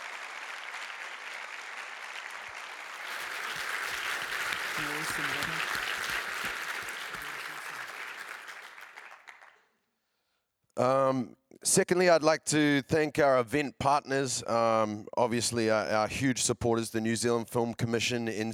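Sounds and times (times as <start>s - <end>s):
audience applause: 0.0s - 9.6s
speech: 4.8s - 5.8s, 10.8s - 18.5s.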